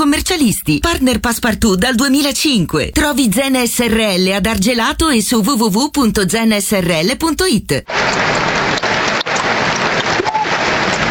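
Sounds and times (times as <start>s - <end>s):
speech: 0.0s - 8.4s
stadium applause for substituted player: 7.9s - 11.0s.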